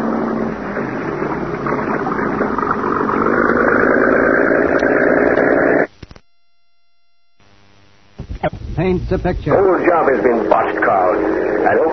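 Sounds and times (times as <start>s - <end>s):
cabin cruiser motorboat engine droning: 0.0s - 5.9s, 9.3s - 11.9s
speech: 8.9s - 11.9s.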